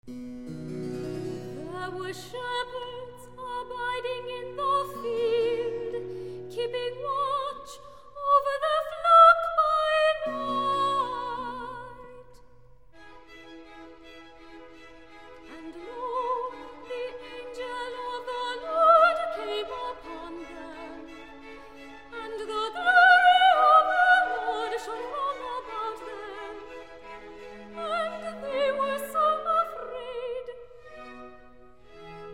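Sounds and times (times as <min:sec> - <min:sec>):
soprano singing recitative: 0:01.6 - 0:12.4, 0:15.4 - 0:21.4, 0:22.0 - 0:30.8.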